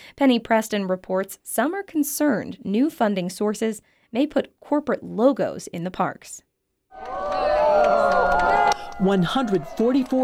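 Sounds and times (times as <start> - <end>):
speech: 0.2 - 10.2
crowd cheering as Old Faithful geyser erupts in Yellowstone National Park: 6.9 - 10.2.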